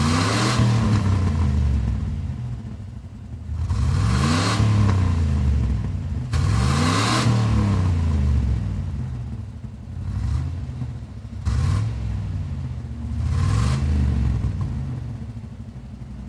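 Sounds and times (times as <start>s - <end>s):
1990 Chevy Camaro engine on hard revs, exterior: 0.0s - 2.0s, 3.5s - 8.7s, 10.0s - 15.0s.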